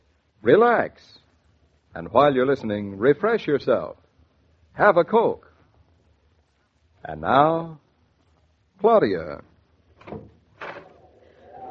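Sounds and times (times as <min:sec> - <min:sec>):
faint hum: 0:00.0 - 0:11.6
speech: 0:00.4 - 0:01.2, 0:02.0 - 0:04.0, 0:04.8 - 0:05.5, 0:07.0 - 0:07.8, 0:08.8 - 0:10.3
door opening: 0:10.0 - 0:11.1.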